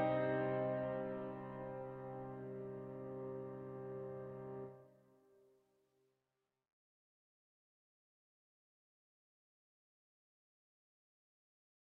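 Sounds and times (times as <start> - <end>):
slow classical piece in C minor: 0.0 - 4.9.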